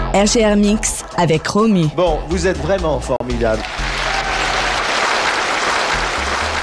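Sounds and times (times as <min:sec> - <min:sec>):
speech: 0:00.2 - 0:03.8
audience applause: 0:03.4 - 0:06.6.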